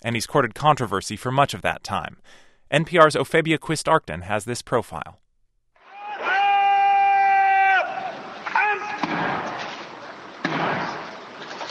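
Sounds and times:
speech: 0.0s - 5.2s
crowd noise: 5.8s - 11.7s
military gun salute at a presidential inauguration: 8.0s - 11.7s.

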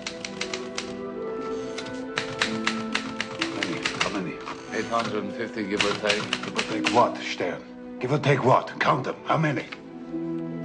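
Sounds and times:
rapid typewriter keystrokes: 0.0s - 1.0s, 2.2s - 4.2s, 5.8s - 7.1s
soft tonal music: 0.0s - 10.6s
speech: 4.8s - 9.8s.

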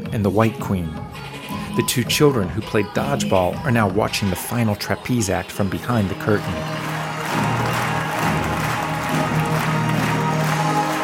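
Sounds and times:
speech: 0.1s - 7.5s
audience applause after performance: 6.1s - 11.0s
faint crowd cheering: 6.4s - 11.0s.

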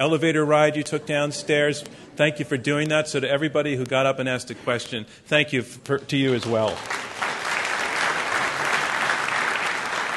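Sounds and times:
speech: 0.0s - 7.0s
audience applause: 6.3s - 10.1s.

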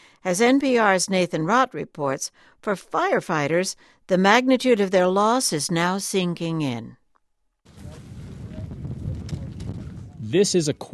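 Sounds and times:
speech: 0.2s - 7.0s, 10.3s - 10.9s
hot wind blowing across a grass field at a wildfire helicopter base: 7.7s - 10.6s.

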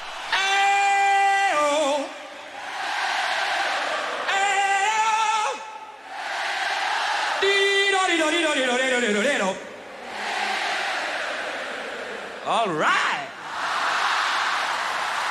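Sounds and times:
Wembley Stadium audience singing replies in call and response: 0.0s - 15.2s
singer's long held vocal phrases at a large concert: 0.2s - 2.6s, 3.8s - 6.0s, 7.4s - 10.2s, 11.4s - 13.6s
speech: 12.5s - 13.2s.

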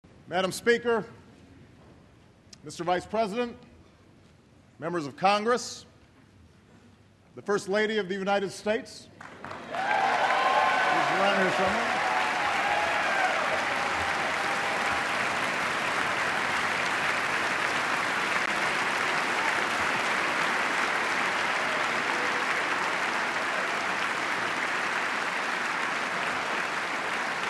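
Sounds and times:
speech: 0.3s - 1.2s, 2.6s - 3.7s, 4.8s - 5.9s, 7.4s - 10.0s, 11.2s - 12.0s
sustained applause for First Lady Michelle Obama: 9.2s - 27.4s.

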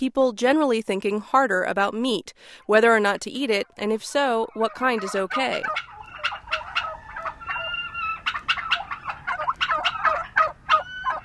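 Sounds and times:
speech: 0.0s - 6.4s
turkeys gobbling on a farm pasture: 3.6s - 11.2s.

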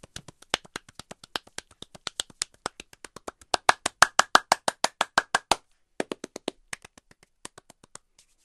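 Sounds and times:
hand clapping in body percussion: 0.0s - 8.2s.

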